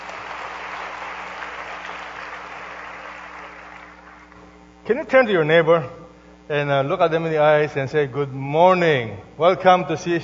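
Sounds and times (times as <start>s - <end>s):
audience clapping applause: 0.0s - 4.5s
speech: 4.9s - 10.2s.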